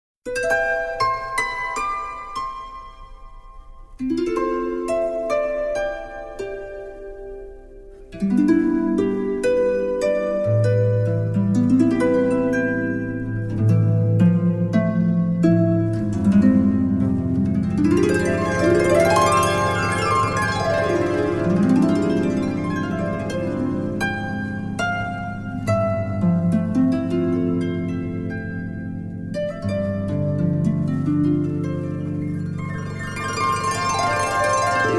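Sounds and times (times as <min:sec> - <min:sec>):
harp: 0:00.2 - 0:34.9.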